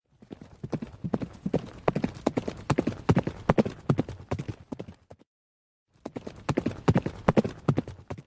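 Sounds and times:
horse galloping for animation: 0:00.1 - 0:05.2, 0:06.0 - 0:08.2.

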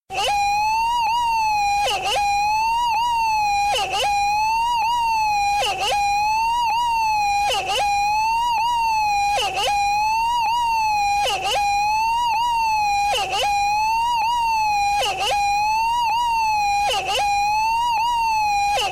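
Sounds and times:
siren: 0:00.1 - 0:18.9.

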